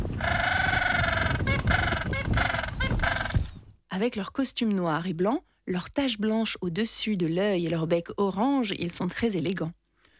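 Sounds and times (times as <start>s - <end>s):
gentoo penguin braying call: 0.2s - 3.4s
speech: 4.0s - 9.8s.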